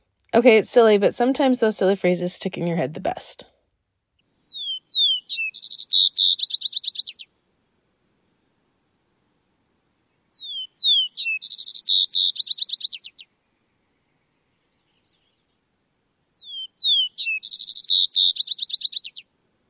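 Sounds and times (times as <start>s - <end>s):
speech: 0.4s - 3.5s
vesper sparrow song: 4.4s - 7.3s, 10.3s - 13.4s, 16.4s - 19.3s.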